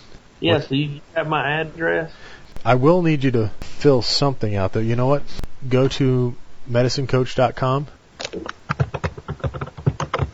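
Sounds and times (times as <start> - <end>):
speech: 0.4 - 8.6
keyboard typing: 8.2 - 10.3.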